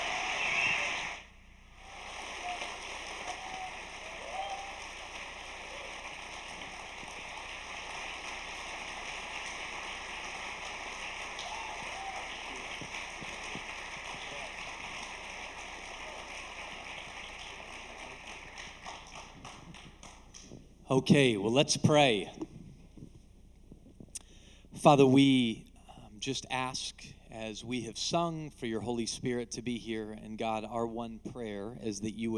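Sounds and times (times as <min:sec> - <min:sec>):
audience applause welcoming two guests onto the stage at a church gathering: 0:00.0 - 0:20.4
speech: 0:20.9 - 0:22.4, 0:24.8 - 0:32.3.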